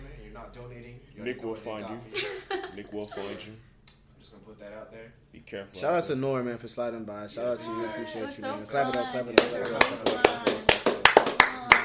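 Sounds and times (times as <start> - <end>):
speech: 0.4 - 10.8
people clapping in a brisk rhythm: 8.8 - 11.8.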